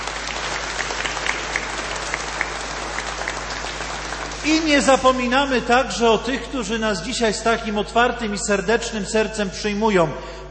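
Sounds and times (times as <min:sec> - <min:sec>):
crowd applause: 0:00.0 - 0:05.2
speech: 0:04.4 - 0:10.4.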